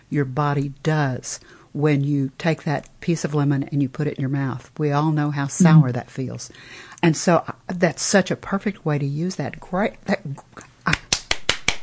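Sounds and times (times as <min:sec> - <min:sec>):
speech: 0:00.1 - 0:11.0
hand claps: 0:10.9 - 0:11.8.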